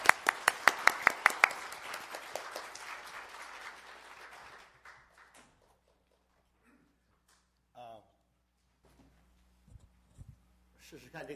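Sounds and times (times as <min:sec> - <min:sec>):
audience applause welcoming a reverend to the podium: 0:00.0 - 0:06.5
speech: 0:10.9 - 0:11.3.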